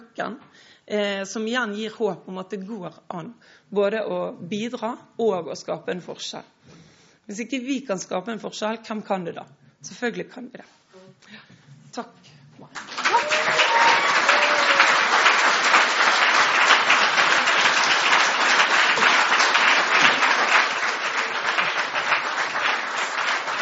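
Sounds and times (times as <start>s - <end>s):
speech: 0.2s - 6.6s, 7.3s - 12.9s
audience applause: 12.8s - 23.6s.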